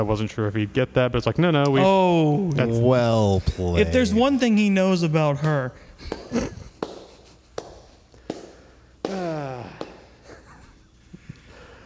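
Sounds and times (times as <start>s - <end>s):
speech: 0.0s - 6.6s
person speaking and groaning: 3.4s - 4.3s, 9.1s - 9.8s
slow deliberate hand clapping: 5.4s - 10.1s.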